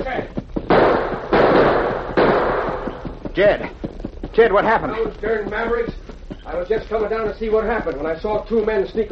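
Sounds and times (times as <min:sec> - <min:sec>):
gunshots: 0:00.6 - 0:03.2
speech: 0:03.4 - 0:03.8, 0:04.4 - 0:09.1.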